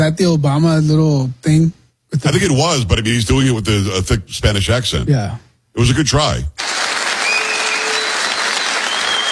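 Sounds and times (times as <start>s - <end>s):
speech: 0.0s - 6.7s
audience clapping: 6.6s - 9.3s.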